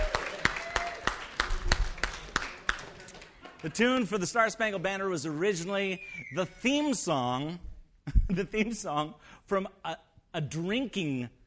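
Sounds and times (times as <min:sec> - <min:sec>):
audience applause: 0:00.0 - 0:03.8
speech: 0:03.6 - 0:07.7, 0:08.3 - 0:11.4.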